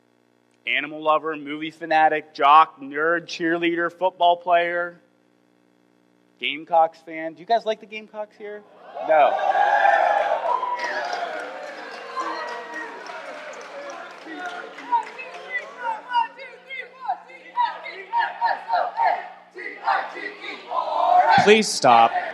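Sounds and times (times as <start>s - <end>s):
speech: 0.7s - 5.0s, 6.4s - 10.0s, 21.4s - 22.2s
audience cheering and yelling: 8.7s - 22.3s.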